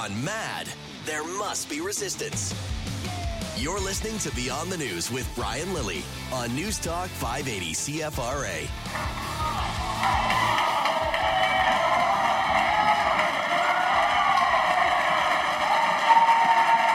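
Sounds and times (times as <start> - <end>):
speech: 0.0 - 9.3, 10.0 - 10.6
members of parliament clapping: 8.8 - 16.9.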